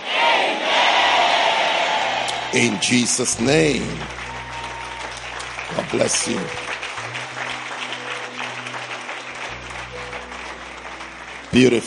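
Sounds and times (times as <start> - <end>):
audience shouting amen: 0.0 - 3.2
speech: 2.5 - 4.2, 5.9 - 6.7, 11.6 - 11.8.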